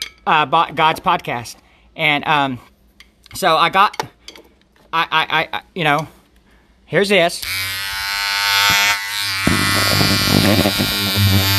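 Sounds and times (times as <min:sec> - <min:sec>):
speech: 0:00.2 - 0:02.7, 0:03.3 - 0:04.1, 0:04.9 - 0:06.2, 0:06.9 - 0:07.7, 0:10.4 - 0:11.1
electric shaver buzzing against skin: 0:07.4 - 0:11.5.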